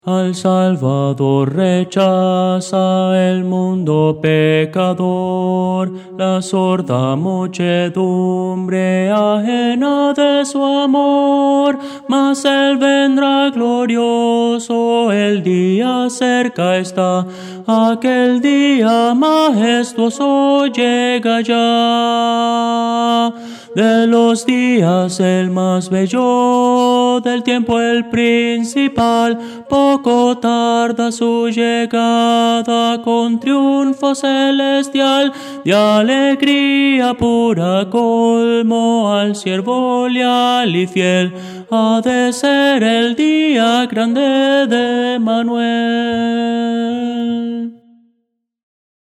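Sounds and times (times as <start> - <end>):
tenor singing: 0.0 - 47.9.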